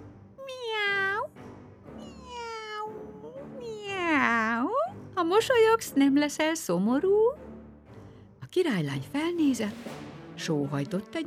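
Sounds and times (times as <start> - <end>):
cat meowing: 0.4 - 1.3, 2.0 - 4.3
speech: 5.3 - 7.4, 8.5 - 11.2.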